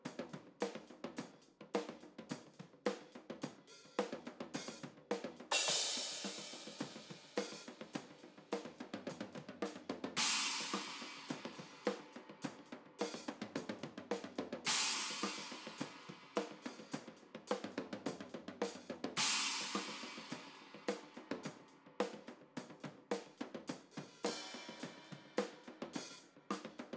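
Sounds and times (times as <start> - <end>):
cymbals: 0.0 - 26.9.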